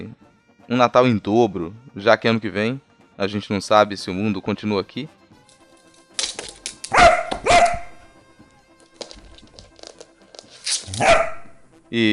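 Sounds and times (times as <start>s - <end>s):
speech: 0.0s - 5.2s, 11.9s - 12.1s
dog barking: 6.9s - 8.1s, 10.9s - 11.6s.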